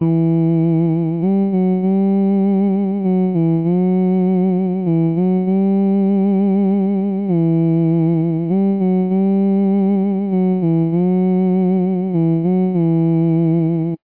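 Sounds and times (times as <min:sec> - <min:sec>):
bass: 0:00.0 - 0:14.0.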